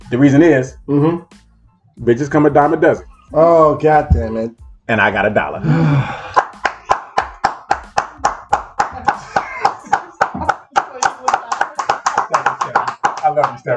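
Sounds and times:
speech: 0.1 - 1.4, 2.0 - 6.2
hand clapping: 6.3 - 13.7.

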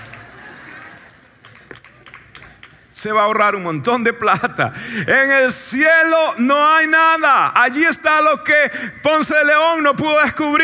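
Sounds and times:
audience applauding: 0.0 - 2.9
speech: 3.0 - 10.6.

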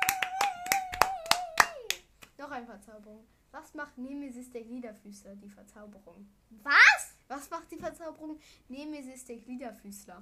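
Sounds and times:
hands clapping: 0.0 - 2.4
speech: 2.6 - 10.2.

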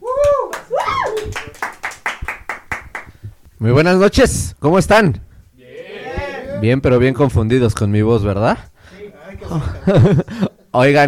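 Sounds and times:
audience applause: 0.4 - 3.1
speech: 3.6 - 5.2, 6.6 - 8.7, 9.4 - 11.0
laughter: 9.3 - 10.7.

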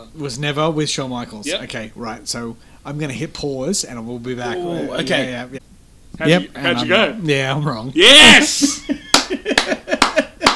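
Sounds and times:
speech: 0.0 - 9.6
laughter: 4.4 - 5.4, 8.4 - 10.5
hand clapping: 9.0 - 10.5.

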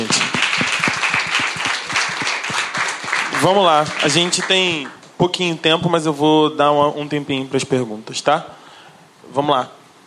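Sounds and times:
audience applause: 0.0 - 5.0
speech: 3.4 - 8.6, 9.3 - 9.8.

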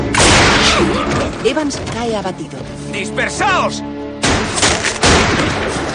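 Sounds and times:
gunfire in a shootout from a western film: 0.1 - 1.0, 4.2 - 5.8
speech: 1.7 - 4.0.

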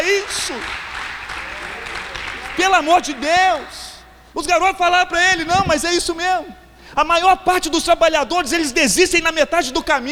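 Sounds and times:
audience applause: 0.0 - 4.0
speech: 0.2 - 0.9, 2.6 - 3.8, 4.4 - 10.0.

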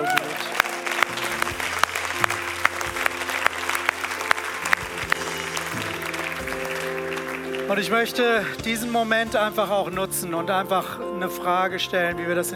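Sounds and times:
audience applauding: 0.0 - 9.2
speech: 7.7 - 12.5.

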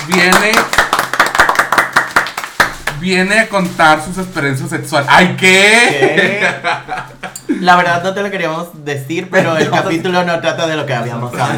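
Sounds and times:
people clapping: 0.0 - 3.3
speech: 0.1 - 0.9, 3.0 - 11.5
laughter: 5.8 - 7.6, 11.4 - 11.5.

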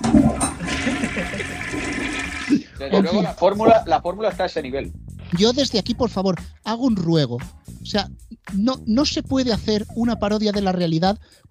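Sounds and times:
toilet flushing: 0.0 - 2.7
laughter: 0.5 - 1.9, 2.9 - 3.8, 9.7 - 10.6
speech: 2.8 - 11.4.

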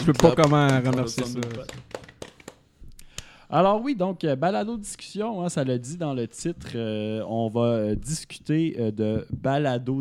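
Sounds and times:
speech: 0.0 - 2.0, 3.5 - 9.9
applause: 0.0 - 2.6.

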